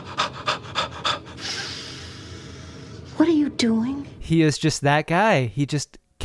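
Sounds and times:
loud heavy breathing during yoga: 0.0 - 3.2
speech: 3.2 - 6.2.

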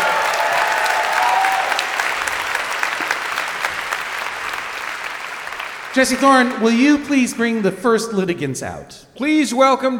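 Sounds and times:
audience applause: 0.0 - 8.0
speech: 6.0 - 9.9.

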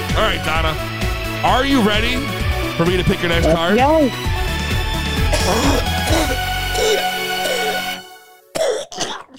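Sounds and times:
speech: 0.2 - 4.4, 5.5 - 7.1
person coughing while smoking: 5.3 - 7.9, 8.5 - 9.3.

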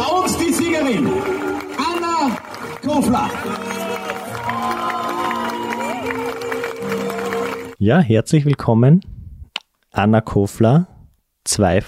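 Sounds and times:
audience applause: 0.0 - 7.8
speech: 0.9 - 1.4, 2.9 - 4.2, 7.8 - 9.2, 9.9 - 11.8.

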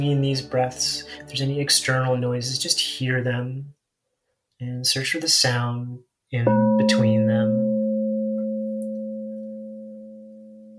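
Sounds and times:
speech: 0.0 - 3.8, 4.6 - 7.6
singing bowl ringing: 6.5 - 10.7.

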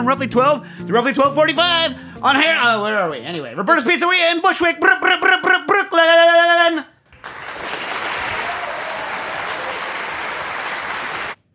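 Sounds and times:
speech: 0.0 - 6.9
crowd applauding: 7.1 - 11.4.

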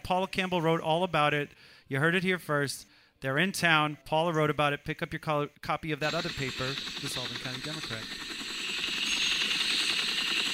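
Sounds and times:
speech: 0.1 - 8.4
helicopter: 6.0 - 10.5.

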